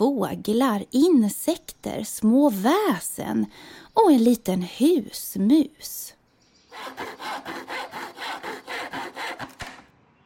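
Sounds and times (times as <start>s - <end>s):
speech: 0.0s - 6.2s, 6.8s - 8.0s
hand saw cutting through wood: 6.7s - 9.9s
sharp knocks: 9.2s - 9.9s.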